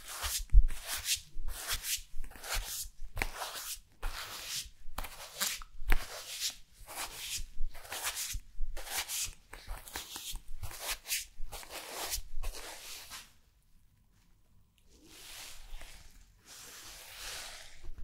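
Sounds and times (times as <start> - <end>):
fabric brushing against a body: 0.0 - 13.4, 14.9 - 17.8.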